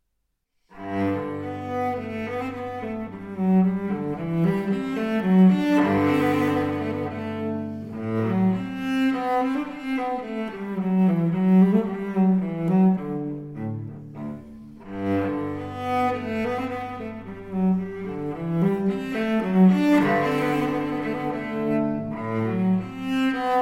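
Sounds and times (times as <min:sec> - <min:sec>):
cello piece: 0:00.7 - 0:23.6.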